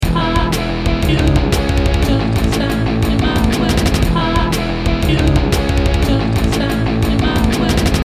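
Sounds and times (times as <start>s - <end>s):
distorted guitar: 0.0s - 8.0s
vocals: 0.0s - 8.0s.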